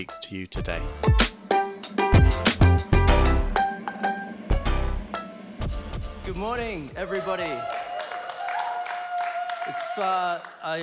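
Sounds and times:
speech: 0.0 - 1.2, 6.3 - 7.8, 9.7 - 10.8
sustained high tone: 1.4 - 6.4
crowd applauding and cheering: 6.8 - 10.8.

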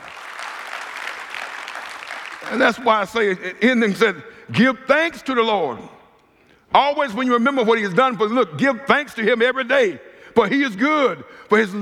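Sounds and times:
audience clapping hands: 0.0 - 2.9
speech: 2.4 - 6.0, 6.7 - 11.8.

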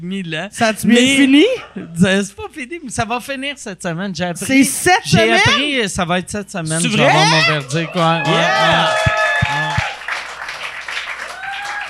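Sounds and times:
speech: 0.0 - 9.1
audience applause: 7.1 - 11.8.

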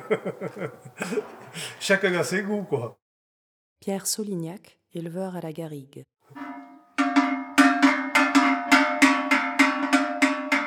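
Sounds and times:
laughter: 0.0 - 1.8
speech: 0.1 - 3.0, 3.8 - 6.4
livestock bells ringing: 6.4 - 10.6.

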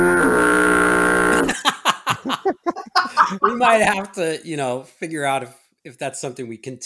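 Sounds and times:
foghorn sound effect: 0.0 - 1.5
laughter: 1.5 - 4.1
speech: 3.6 - 6.8.

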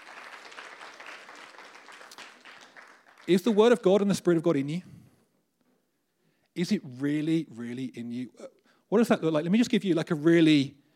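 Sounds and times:
audience applause: 0.0 - 3.7
speech: 3.2 - 4.9, 6.6 - 10.8.

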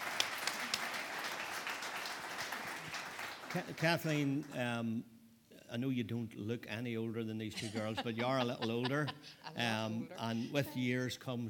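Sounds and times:
audience applause: 0.0 - 4.5
speech: 3.5 - 5.1, 5.7 - 11.4
laughter: 7.5 - 10.4.

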